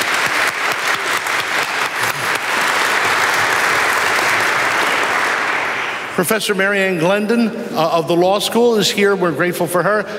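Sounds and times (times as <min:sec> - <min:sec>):
audience round of applause: 0:00.0 - 0:06.2
speech: 0:06.2 - 0:10.1.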